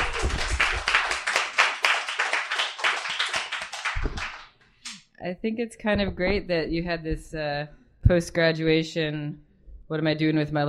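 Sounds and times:
audience applause: 0:00.0 - 0:04.5
speech: 0:05.2 - 0:10.6.

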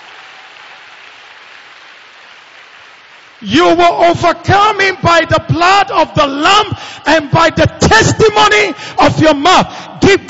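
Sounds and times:
audience clapping: 0:00.0 - 0:03.5
speech: 0:03.4 - 0:10.2.

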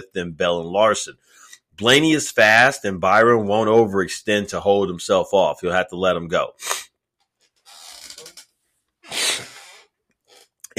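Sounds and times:
speech: 0:00.0 - 0:06.9
person sniffling from allergies: 0:06.6 - 0:06.9, 0:09.0 - 0:09.9.

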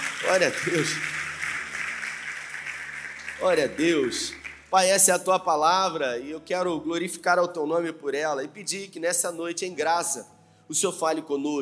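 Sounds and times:
audience applause: 0:00.0 - 0:05.1
speech: 0:00.2 - 0:01.2, 0:03.4 - 0:11.6.

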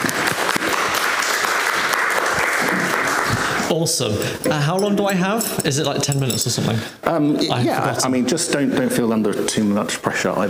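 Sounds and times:
audience applauding to welcome a speaker: 0:00.0 - 0:03.8
speech: 0:03.7 - 0:10.4.

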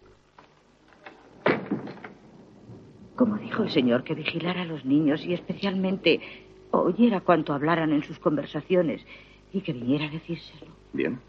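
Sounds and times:
door swinging shut with a solid thump: 0:01.0 - 0:02.3
speech: 0:03.2 - 0:11.2.

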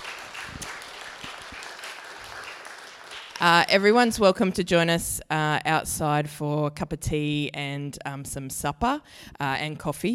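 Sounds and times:
audience applause at a community peace talk: 0:00.0 - 0:03.6
speech: 0:03.4 - 0:10.1.

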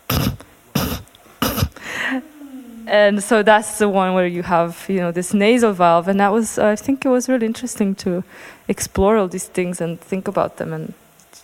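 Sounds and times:
person coughing through the nose: 0:00.0 - 0:01.8
speech: 0:02.1 - 0:11.4.

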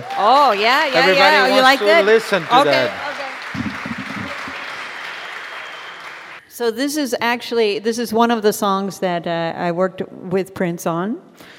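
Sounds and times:
audience applause: 0:00.0 - 0:06.4
speech: 0:00.2 - 0:03.0, 0:06.6 - 0:11.5.

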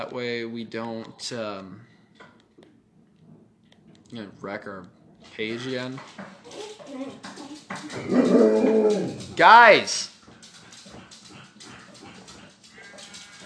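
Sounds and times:
speech: 0:00.0 - 0:01.9, 0:04.1 - 0:10.1
dogs whimpering and barking: 0:06.4 - 0:09.4, 0:10.5 - 0:13.4.

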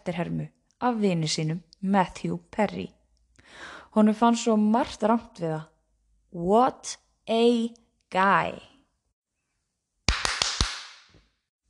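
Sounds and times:
speech: 0:00.0 - 0:05.7, 0:06.3 - 0:08.7
rhythmic TV-theme clapping sound effect: 0:10.1 - 0:11.2.

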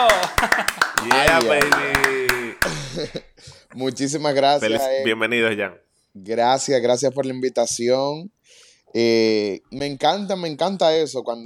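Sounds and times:
handclaps from a few people: 0:00.0 - 0:02.8
laughter: 0:00.0 - 0:03.4
speech: 0:03.0 - 0:11.4.

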